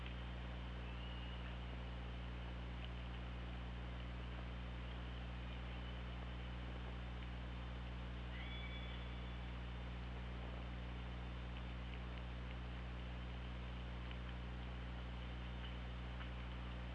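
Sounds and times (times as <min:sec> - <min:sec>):
constant low underwater hum: 0:00.0 - 0:16.9
killer whale whistled call: 0:08.3 - 0:09.3.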